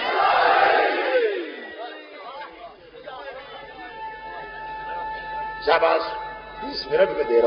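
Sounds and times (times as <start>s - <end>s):
crowd shouting a slogan: 0.0s - 5.1s
speech: 5.7s - 7.4s.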